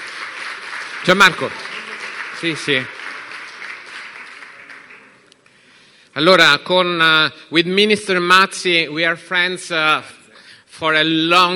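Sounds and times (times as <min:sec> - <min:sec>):
faint audience applause welcoming a guest onto the stage: 0:00.0 - 0:05.4
speech: 0:01.0 - 0:01.6, 0:02.4 - 0:03.0, 0:06.2 - 0:10.2, 0:10.8 - 0:11.5.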